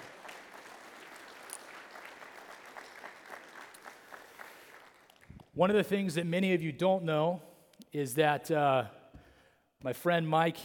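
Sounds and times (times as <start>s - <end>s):
audience applause: 0.0s - 5.4s
speech: 5.6s - 9.0s, 9.8s - 10.6s.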